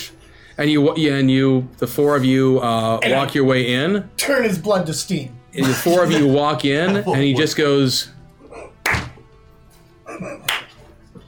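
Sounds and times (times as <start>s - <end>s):
speech: 0.6s - 8.2s
laughter: 5.6s - 7.9s, 10.1s - 10.7s
slow clapping: 8.8s - 9.3s, 10.4s - 10.9s.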